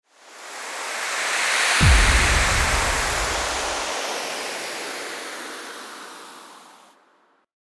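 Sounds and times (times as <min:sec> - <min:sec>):
transition sound: 0:01.7 - 0:05.1.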